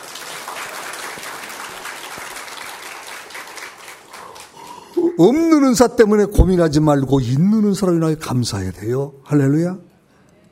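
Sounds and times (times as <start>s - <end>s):
audience applause: 0.0s - 5.2s
speech: 5.2s - 9.9s.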